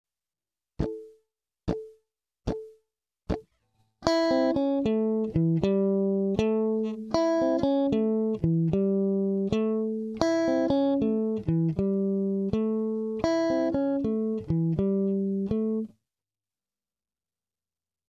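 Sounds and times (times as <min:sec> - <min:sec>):
guitar blues lick: 0:04.0 - 0:15.9.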